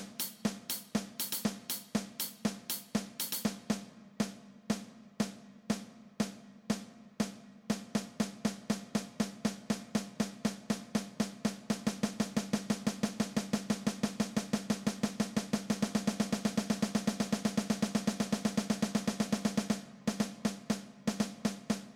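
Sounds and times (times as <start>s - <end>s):
drum kit playing: 0.0s - 21.9s.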